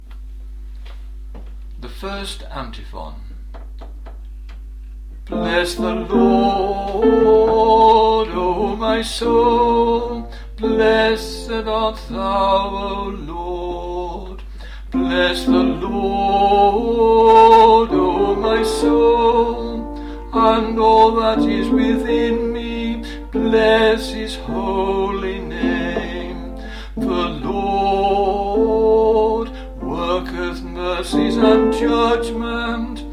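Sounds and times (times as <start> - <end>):
first antiphon liturgical chant: 5.3 - 14.4, 15.0 - 33.1.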